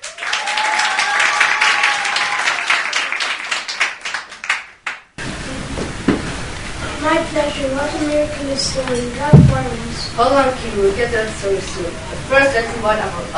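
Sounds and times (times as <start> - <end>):
audience applause welcoming a show guest: 0.0 - 5.1
speech: 7.1 - 13.3.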